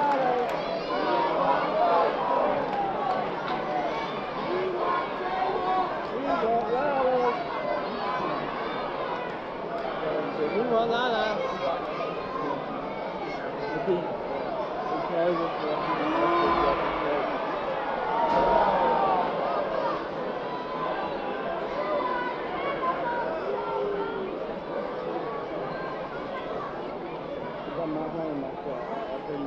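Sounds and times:
rising cheers: 0.0s - 10.1s, 14.6s - 27.0s
large crowd chanting and shouting at a wrestling event: 0.0s - 29.4s.

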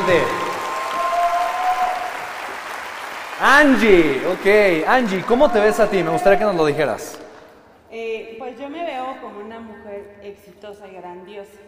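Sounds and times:
audience applause: 0.0s - 7.0s
speech: 0.1s - 0.4s, 3.4s - 7.2s, 7.9s - 11.6s.

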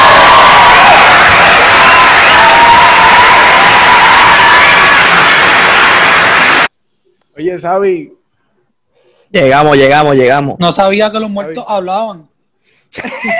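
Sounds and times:
audience applause: 0.0s - 6.7s
speech: 7.6s - 8.2s, 9.3s - 12.3s, 12.9s - 13.3s.

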